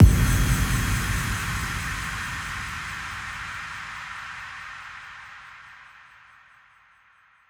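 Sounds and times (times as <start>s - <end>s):
impact: 0.0s - 4.4s.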